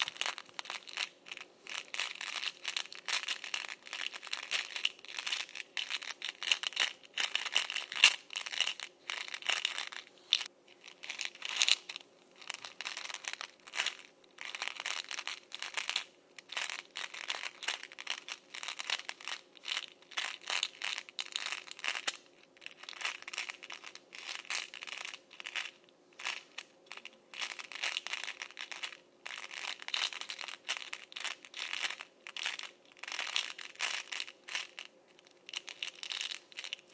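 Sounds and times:
M&M's rolling and rattling inside a can: 0.0s - 36.9s.

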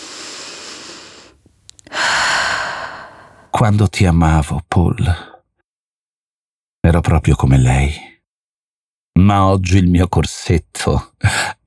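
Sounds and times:
woman breathing: 0.0s - 3.6s
speech: 3.6s - 5.3s, 6.9s - 8.1s, 9.2s - 11.6s.

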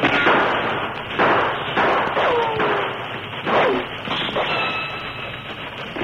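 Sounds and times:
descending whining bullet ricochets: 0.0s - 4.6s
gunshots at a steam locomotive: 0.0s - 6.0s
steady rumbling noise: 0.0s - 6.0s.

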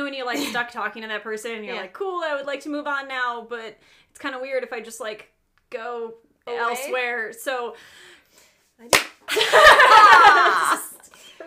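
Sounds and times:
speech: 0.1s - 11.4s
people clapping hands: 8.9s - 9.3s
laughter: 9.3s - 11.4s.

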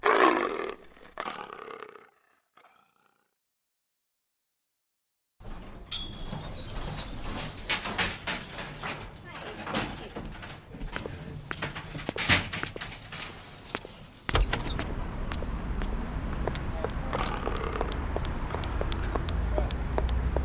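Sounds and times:
leopard roaring: 0.0s - 3.2s, 17.1s - 18.2s
noisy clatter and commotion: 7.2s - 20.4s.

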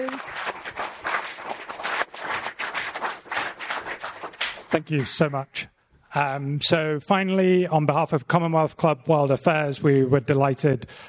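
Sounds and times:
audience applause for panelists: 0.0s - 5.0s
speech: 4.7s - 11.0s.

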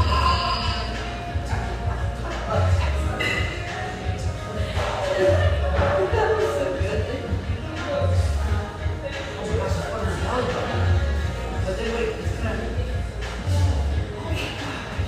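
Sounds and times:
cups and dishes clinking and knocking: 0.0s - 1.0s, 3.2s - 3.8s
murmur of overlapping voices in a busy coffee shop: 0.0s - 15.0s.

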